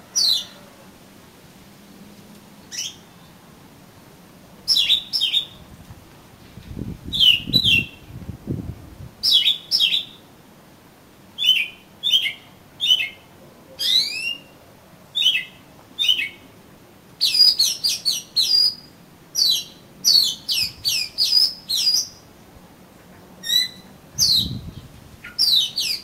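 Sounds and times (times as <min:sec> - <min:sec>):
Oriental magpie-robin song: 0:00.2 - 0:00.6, 0:02.6 - 0:03.3, 0:04.7 - 0:05.6, 0:07.1 - 0:08.1, 0:09.2 - 0:10.2, 0:11.4 - 0:16.4, 0:17.2 - 0:22.2, 0:23.4 - 0:26.0.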